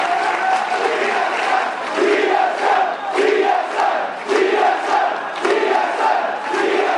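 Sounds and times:
crowd reaction: 0:00.0 - 0:06.9.

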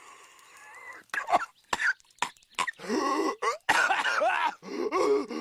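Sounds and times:
person coughing: 0:01.2 - 0:02.0, 0:02.6 - 0:05.3.

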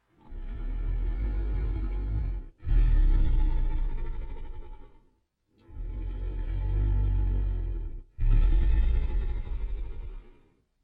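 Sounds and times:
dragon sleeping: 0:00.0 - 0:05.0, 0:05.7 - 0:10.6.

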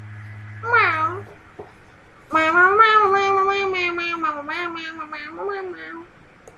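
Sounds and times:
cat meowing: 0:00.6 - 0:01.3, 0:02.3 - 0:06.1.

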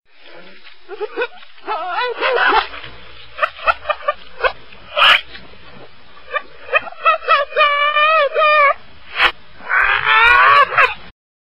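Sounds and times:
reversed crazy laugh: 0:00.9 - 0:02.8, 0:03.4 - 0:05.3, 0:06.3 - 0:11.1.

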